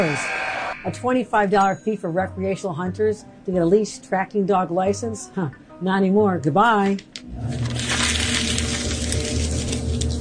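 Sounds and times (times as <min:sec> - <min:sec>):
speech: 0:00.0 - 0:07.8
sheets of copy paper crumpling: 0:07.5 - 0:10.2.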